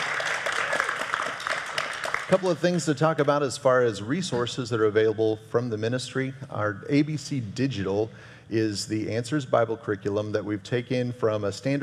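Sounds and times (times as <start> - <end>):
studio audience clapping: 0.0 - 3.4
speech: 2.3 - 11.8.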